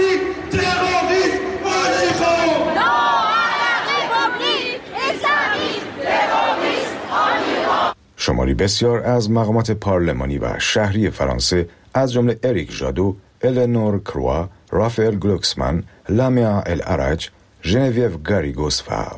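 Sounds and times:
thousands of protesters chanting slogans while marching through Paris: 0.2 - 8.0
speech: 8.6 - 19.1.

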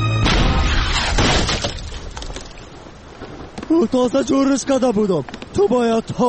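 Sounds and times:
cannonball striking a ship: 0.2 - 2.0
splintering debris clatter: 0.3 - 3.7
speech: 3.7 - 6.2.

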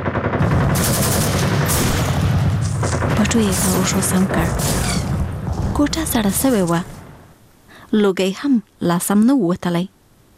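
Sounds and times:
rapid gunfire: 0.0 - 7.3
speech: 3.3 - 4.9, 5.8 - 7.0, 7.9 - 10.0.

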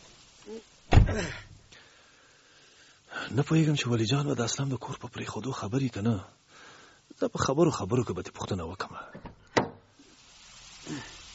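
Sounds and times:
speech: 0.5 - 1.5, 3.3 - 9.4
pickup truck door being pushed shut: 0.9 - 1.2.

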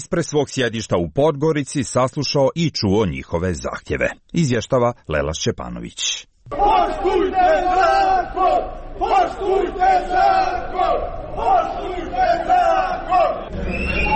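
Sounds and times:
speech: 0.1 - 14.1
pensioners chanting in protest: 6.5 - 14.1
high whistle-like tone: 13.4 - 14.1.

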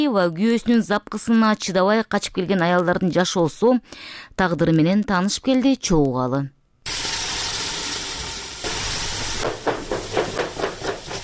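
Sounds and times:
speech: 0.0 - 6.6
sizzling hiss of cooking in a kitchen: 6.9 - 11.2
pregnant woman forcefully chopping carrots with a knife: 9.4 - 11.2.

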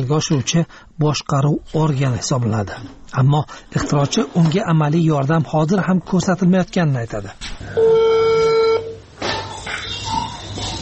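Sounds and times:
speech: 0.0 - 8.0
telephone beep of an unanswered call: 7.8 - 9.1.

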